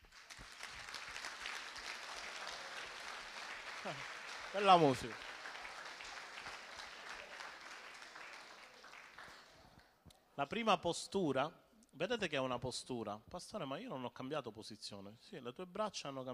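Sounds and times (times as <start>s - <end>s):
crowd clapping: 0.0s - 10.0s
speech: 3.8s - 5.2s, 10.4s - 16.3s.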